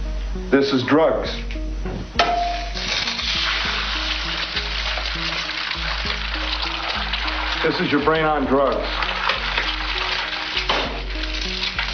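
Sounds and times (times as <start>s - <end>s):
speech: 0.4s - 2.4s, 7.6s - 9.1s
egg frying in a pan: 2.5s - 11.9s.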